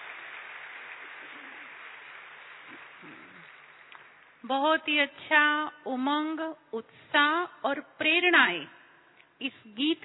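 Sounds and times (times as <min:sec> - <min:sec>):
audience applause after a group's song performance: 0:00.0 - 0:04.4
speech: 0:04.4 - 0:08.8, 0:09.4 - 0:10.0.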